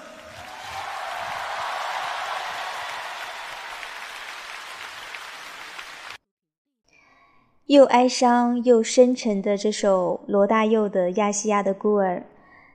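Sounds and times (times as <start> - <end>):
audience applause: 0.0 - 6.2
speech: 7.7 - 12.3.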